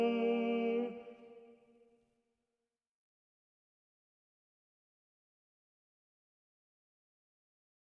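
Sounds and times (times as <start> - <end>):
tenor singing: 0.0 - 1.6.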